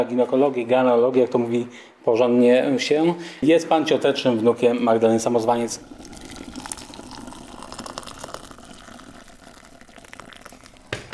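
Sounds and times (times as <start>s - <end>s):
speech: 0.0s - 6.1s
water poured for tea: 4.4s - 11.1s.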